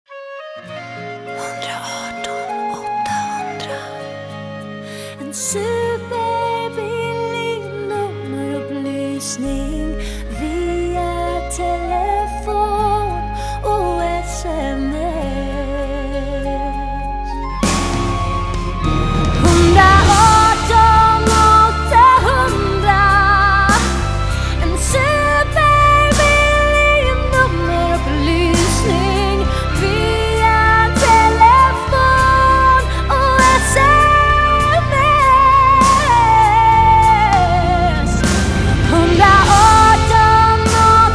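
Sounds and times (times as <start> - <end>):
ballad: 0.1 - 41.1.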